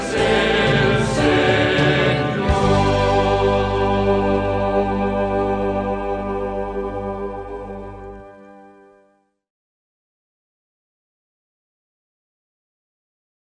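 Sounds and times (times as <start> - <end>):
Pentecost communion hymn singing: 0.0 - 8.1.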